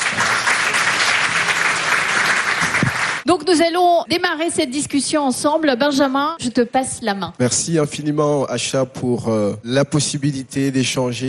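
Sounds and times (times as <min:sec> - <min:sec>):
audience applause: 0:00.0 - 0:03.3
speech: 0:03.3 - 0:11.2.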